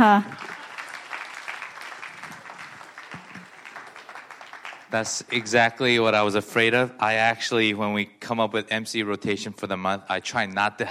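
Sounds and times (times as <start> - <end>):
speech: 0.0 - 0.4, 4.9 - 10.8
audience applause: 0.0 - 5.9.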